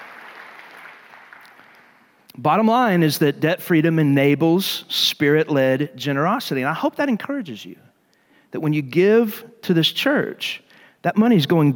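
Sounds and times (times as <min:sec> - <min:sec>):
audience clapping: 0:00.0 - 0:02.2
speech: 0:02.4 - 0:07.9, 0:08.5 - 0:11.7.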